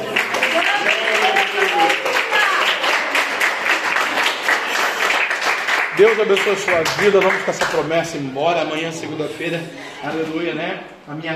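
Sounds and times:
audience applauding: 0:00.0 - 0:07.9
speech: 0:06.0 - 0:11.3.

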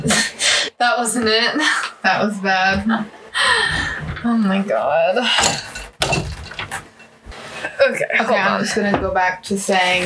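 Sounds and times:
speech: 0:00.8 - 0:05.7, 0:07.8 - 0:10.0
chair being fixed: 0:05.3 - 0:07.2.

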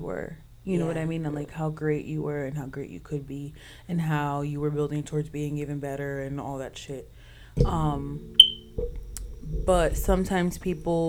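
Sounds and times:
speech: 0:00.0 - 0:11.0
smoke alarm low-battery chirp: 0:08.2 - 0:11.0.

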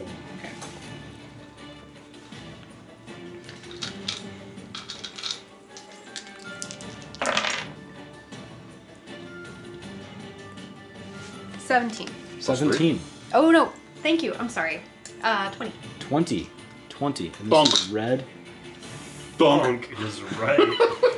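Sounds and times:
dice rolling on a table: 0:03.5 - 0:07.8
speech: 0:11.7 - 0:18.4, 0:19.4 - 0:21.0
laughter: 0:20.0 - 0:21.1.

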